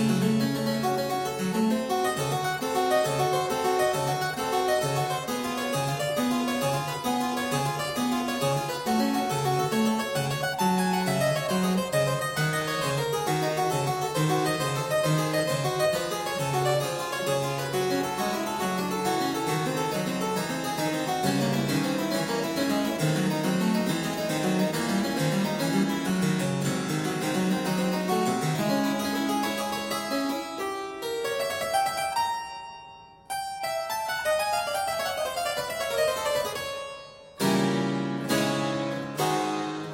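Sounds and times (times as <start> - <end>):
harpsichord prelude in D minor: 0.0 - 39.9.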